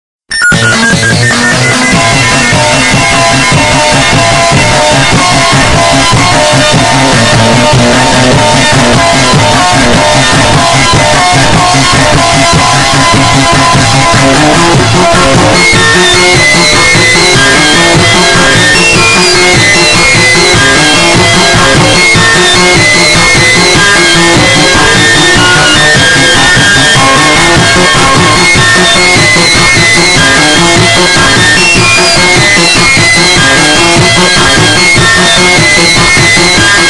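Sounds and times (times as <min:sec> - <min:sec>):
hyper distorted sound: 0:00.3 - 0:36.8.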